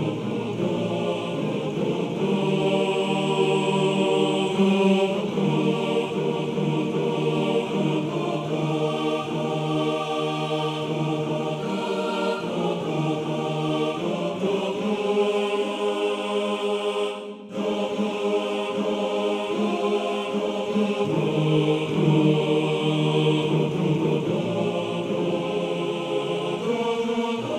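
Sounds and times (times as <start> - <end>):
male choir singing: 0.0 - 27.5.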